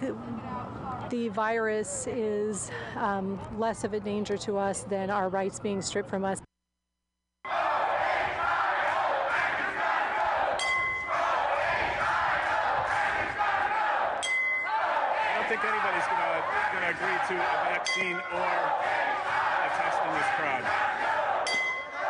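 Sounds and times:
speech: 0:00.0 - 0:06.5
protesters shouting outside the State House: 0:07.5 - 0:22.0.

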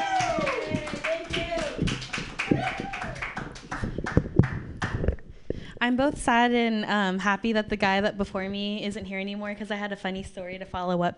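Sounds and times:
voices and cheering: 0:00.0 - 0:03.5
open mic comedy audience clapping for a comedian: 0:00.0 - 0:05.2
speech: 0:05.8 - 0:11.1.

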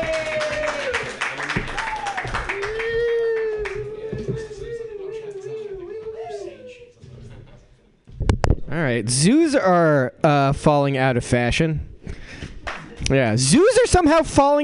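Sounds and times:
audience clapping for a comedian at a comedy workshop: 0:00.0 - 0:04.6, 0:12.6 - 0:13.0
voices cheering and calling out: 0:00.0 - 0:06.9
speech: 0:08.9 - 0:11.9, 0:13.1 - 0:14.6.

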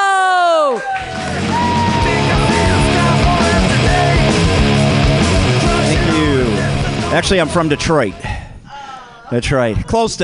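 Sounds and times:
audience clapping and cheering: 0:00.0 - 0:06.0
speech: 0:07.2 - 0:08.4, 0:09.3 - 0:10.2.

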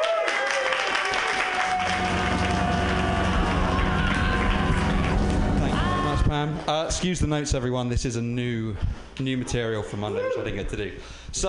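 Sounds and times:
whistles and cheers: 0:00.0 - 0:06.1
crowd applauding: 0:00.0 - 0:06.4
low rumble: 0:01.6 - 0:07.6
speech: 0:06.7 - 0:11.4.

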